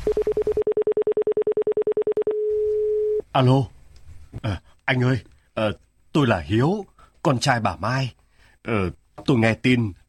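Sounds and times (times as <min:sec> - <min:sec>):
telephone number being dialed: 0:00.0 - 0:03.2
speech: 0:00.1 - 0:00.4, 0:03.4 - 0:03.8, 0:04.4 - 0:10.0.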